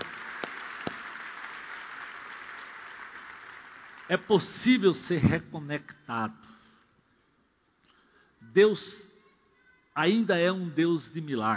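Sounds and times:
audience clapping: 0:00.0 - 0:05.1
speech: 0:04.1 - 0:06.6, 0:08.5 - 0:09.1, 0:10.0 - 0:11.5.

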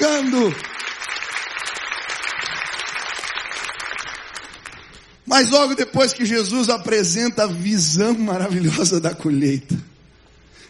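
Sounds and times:
audience applause: 0:00.0 - 0:05.0
speech: 0:00.4 - 0:00.8, 0:05.3 - 0:09.9.

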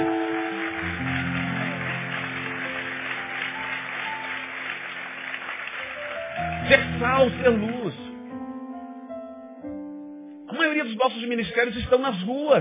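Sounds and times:
audience applauding: 0:00.0 - 0:08.0
speech: 0:06.7 - 0:08.0, 0:10.8 - 0:12.5.

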